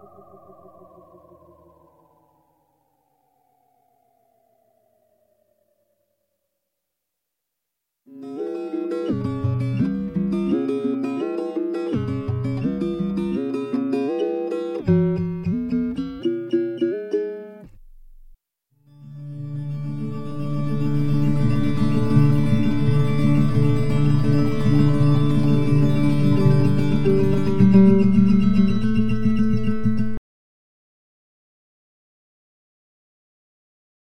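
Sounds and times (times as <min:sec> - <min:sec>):
acoustic guitar: 0:08.1 - 0:18.4, 0:19.0 - 0:30.2.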